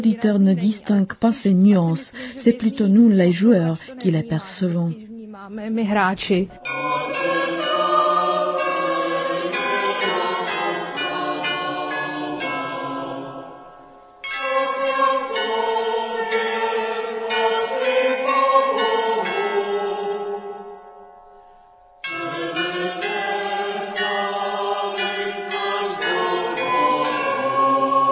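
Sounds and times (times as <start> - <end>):
speech: 0.0 - 6.9
carillon bells playing a melody: 6.6 - 27.9.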